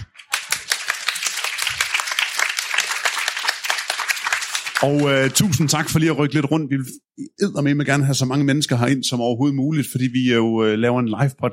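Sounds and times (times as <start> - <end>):
audience clapping: 0.0 - 5.7
speech: 4.8 - 11.5.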